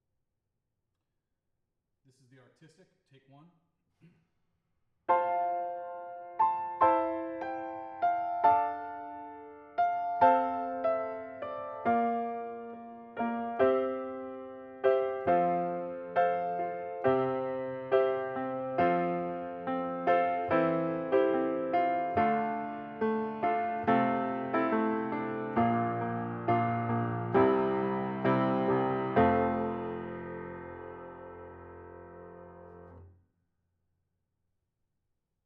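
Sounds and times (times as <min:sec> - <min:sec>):
piano: 0:05.1 - 0:33.1.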